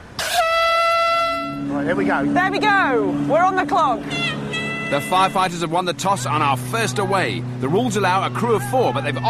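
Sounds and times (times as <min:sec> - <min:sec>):
brassy hooter blast signaling race start: 0:00.2 - 0:09.2
speech: 0:01.9 - 0:04.3, 0:04.9 - 0:09.2.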